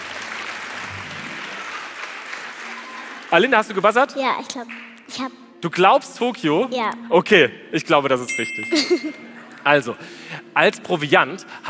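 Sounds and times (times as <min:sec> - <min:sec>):
audience applause at a quiz show: 0:00.0 - 0:03.9
speech: 0:03.3 - 0:11.6.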